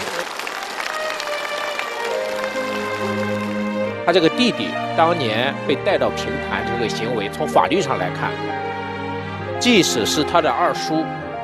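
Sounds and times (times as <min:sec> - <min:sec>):
audience applause: 0:00.0 - 0:04.0
speech: 0:04.1 - 0:08.8, 0:09.6 - 0:11.2.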